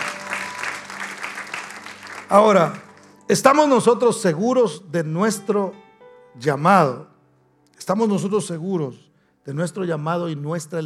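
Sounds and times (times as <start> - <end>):
audience applauding loudly: 0.0 - 3.2
speech: 2.3 - 5.8, 6.4 - 7.1, 7.8 - 10.8.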